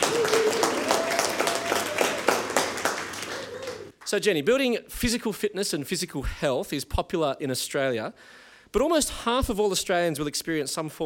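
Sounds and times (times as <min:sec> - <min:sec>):
audience applause: 0:00.0 - 0:04.1
speech: 0:04.1 - 0:11.0.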